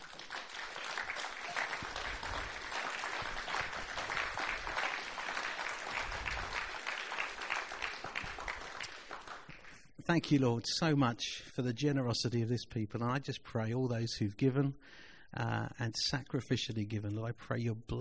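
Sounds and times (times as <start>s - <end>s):
audience applause: 0.0s - 9.7s
speech: 10.1s - 17.9s.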